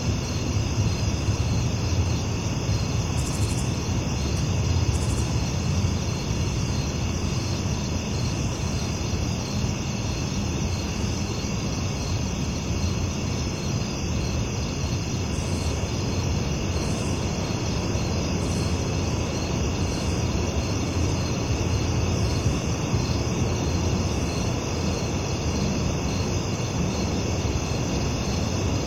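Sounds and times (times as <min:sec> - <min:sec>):
crickets chirping: 0:00.0 - 0:28.8.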